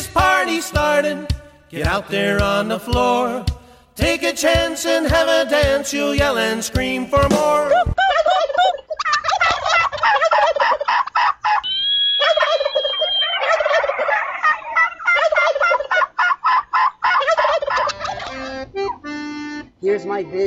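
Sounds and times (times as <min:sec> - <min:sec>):
polka song: 0:00.0 - 0:08.2, 0:12.3 - 0:20.4
speech: 0:00.2 - 0:08.2, 0:20.2 - 0:20.4
turkey gobbling: 0:07.7 - 0:19.3.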